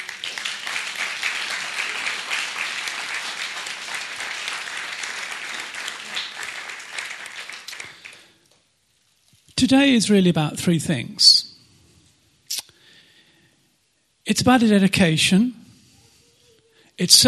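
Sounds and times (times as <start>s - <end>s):
audience clapping: 0.0s - 8.4s
speech: 9.6s - 11.3s, 14.3s - 15.6s, 17.0s - 17.2s.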